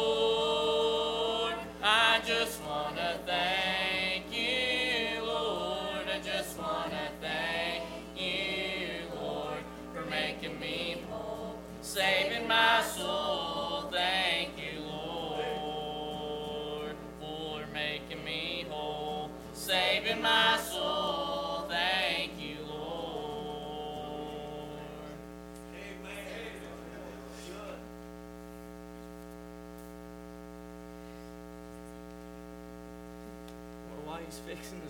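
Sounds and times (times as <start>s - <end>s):
family singing: 0.0s - 27.5s.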